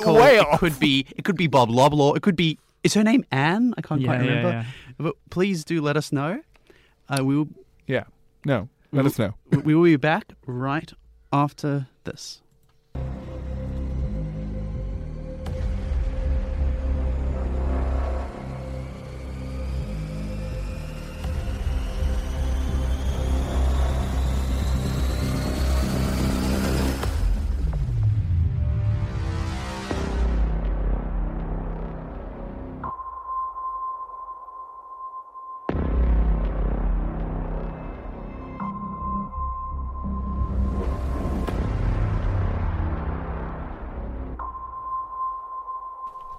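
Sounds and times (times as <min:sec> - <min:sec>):
speech: 0:00.0 - 0:06.5, 0:07.1 - 0:12.4, 0:13.0 - 0:13.2
trailer music: 0:13.0 - 0:34.3, 0:35.7 - 0:45.3.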